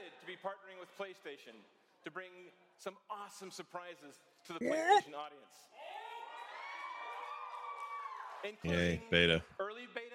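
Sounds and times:
speech: 0:00.4 - 0:05.8, 0:08.4 - 0:10.1
crowd cheering at a live gaming event during a PlayStation partnership announcement: 0:05.8 - 0:09.2.

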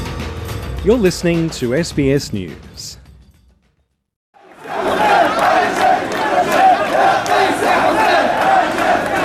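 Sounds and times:
speech: 0:00.8 - 0:03.0
several hundred protesters chanting at a rally in Tunis: 0:04.4 - 0:09.2.

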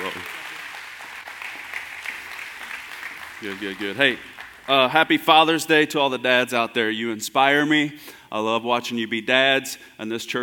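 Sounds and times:
audience applause: 0:00.0 - 0:05.2
speech: 0:03.4 - 0:10.4.

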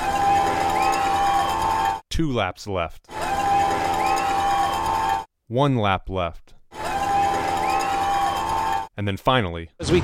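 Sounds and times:
crowd cheering at a cycling race: 0:00.0 - 0:02.0, 0:03.1 - 0:05.3, 0:06.7 - 0:08.9
speech: 0:02.2 - 0:03.2, 0:05.5 - 0:06.6, 0:09.0 - 0:10.0.

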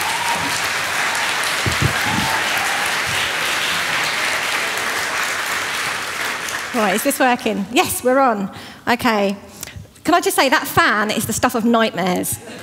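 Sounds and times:
church audience applauding to welcome a speaker: 0:00.0 - 0:07.2
speech: 0:06.8 - 0:09.5, 0:10.1 - 0:12.6.

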